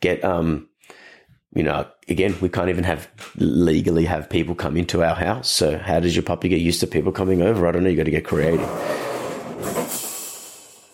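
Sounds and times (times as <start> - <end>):
speech: 0.0 - 9.8
metal object falling on balcony: 8.7 - 10.9.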